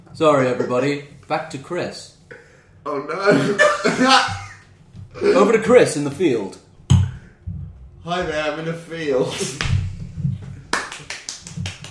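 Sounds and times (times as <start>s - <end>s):
speech: 0.2s - 2.2s, 2.8s - 4.4s, 5.2s - 6.6s, 8.0s - 9.8s
hands clapping: 10.6s - 11.8s.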